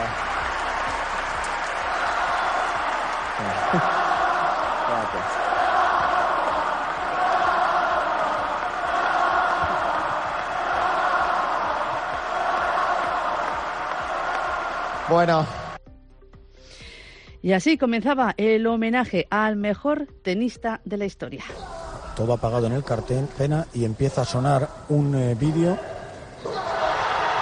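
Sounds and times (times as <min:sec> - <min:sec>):
crowd ovation in the Martín Carpena arena: 0:00.0 - 0:15.8, 0:21.5 - 0:27.3
speech: 0:03.4 - 0:04.0, 0:15.1 - 0:15.6, 0:17.4 - 0:21.6, 0:22.2 - 0:25.9.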